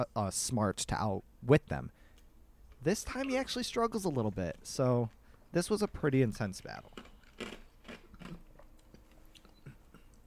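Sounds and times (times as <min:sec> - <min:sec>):
speech: 0:00.0 - 0:02.0, 0:02.8 - 0:07.5
person crunching an ice cube: 0:06.8 - 0:08.5.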